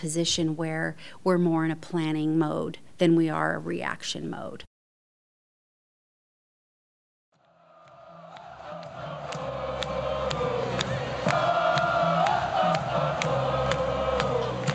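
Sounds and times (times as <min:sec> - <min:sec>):
speech: 0:00.0 - 0:04.7
huge football stadium crowd cheering: 0:07.4 - 0:14.7
claps and whistles: 0:07.8 - 0:14.7.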